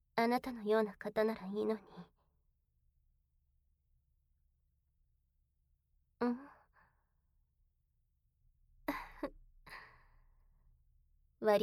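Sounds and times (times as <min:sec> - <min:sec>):
speech: 0:00.2 - 0:02.1, 0:06.2 - 0:06.5, 0:11.4 - 0:11.6
yawn: 0:06.2 - 0:06.7.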